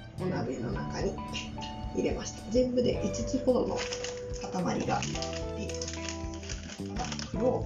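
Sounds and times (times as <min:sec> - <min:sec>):
speech: 0:00.2 - 0:05.5, 0:06.8 - 0:07.6
cinnamon stick being broken by hand: 0:03.8 - 0:07.6.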